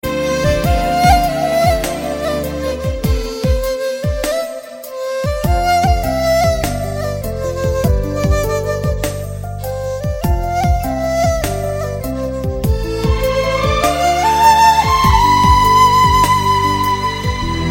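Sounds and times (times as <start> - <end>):
flute melody: 0.0 - 17.6.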